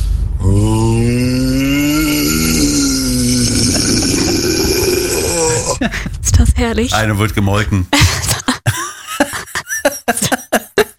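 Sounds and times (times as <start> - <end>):
listener imitating a raspy rock growl: 0.4 - 6.0
speech: 6.6 - 8.3
laughter: 8.0 - 10.9.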